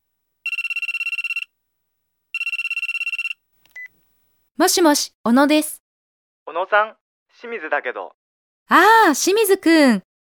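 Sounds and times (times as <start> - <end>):
telephone ringing: 0.4 - 1.6, 2.3 - 3.9
speech: 4.6 - 5.8, 6.5 - 10.1.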